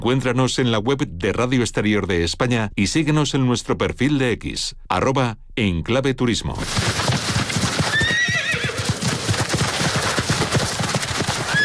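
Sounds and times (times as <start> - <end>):
speech: 0.0 - 7.2
horse hooves clip-clopping: 6.6 - 11.6
horse neighing: 7.9 - 9.0, 11.4 - 11.6.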